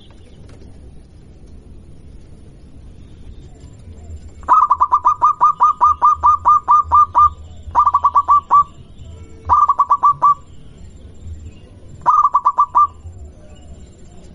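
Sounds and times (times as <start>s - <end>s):
zebra dove cooing song: 3.5s - 8.8s, 9.4s - 10.5s, 12.0s - 14.3s.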